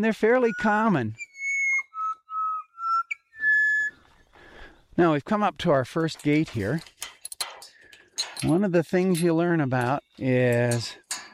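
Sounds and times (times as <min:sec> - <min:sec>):
speech: 0:00.0 - 0:01.2, 0:05.0 - 0:06.9, 0:08.4 - 0:11.1
pied butcherbird dawn song: 0:00.0 - 0:05.0.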